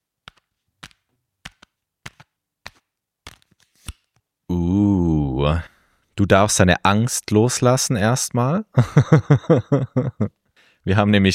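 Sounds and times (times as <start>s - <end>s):
deck of cards shuffled for a card reading: 0.2s - 4.3s
speech: 5.4s - 11.3s
laughter: 8.8s - 10.3s.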